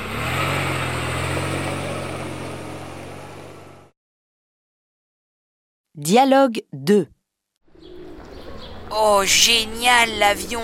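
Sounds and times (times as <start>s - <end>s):
taxi car engine droning: 0.0s - 3.9s
speech: 6.0s - 7.2s, 8.9s - 10.6s.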